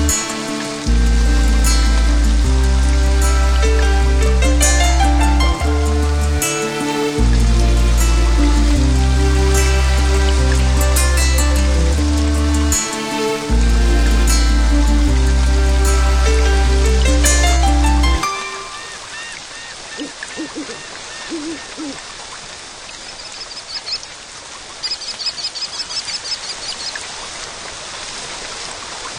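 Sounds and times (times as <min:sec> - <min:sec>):
music: 0:00.0 - 0:19.1
rain: 0:00.0 - 0:29.1
birdsong: 0:18.3 - 0:22.0, 0:22.9 - 0:24.1, 0:24.8 - 0:27.0.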